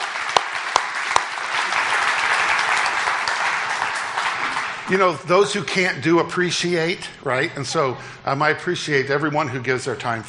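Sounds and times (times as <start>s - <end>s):
crowd applause: 0.0s - 5.1s
speech: 4.9s - 10.2s.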